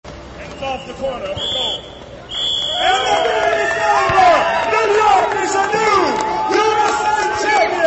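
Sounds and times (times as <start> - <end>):
shrill whistle-like tone: 0.5 - 3.4
crowd cheering at soccer match: 0.5 - 7.8
speech: 0.6 - 1.9.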